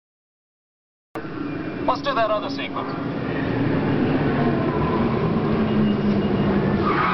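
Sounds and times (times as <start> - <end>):
speech: 1.2 - 3.1
locked tires whining: 1.2 - 7.1
car braking hard without anti-lock brakes, skidding: 3.2 - 7.1.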